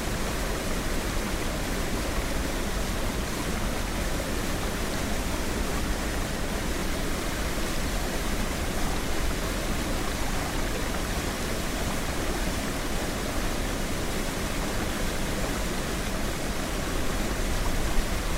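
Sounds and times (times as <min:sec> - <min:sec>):
waterfall: 0:00.0 - 0:18.3.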